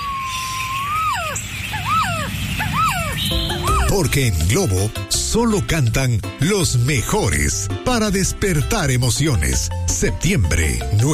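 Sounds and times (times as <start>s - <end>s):
resplendent quetzal singing, national bird of Guatemala: 0.0s - 4.0s
speech: 4.0s - 11.1s.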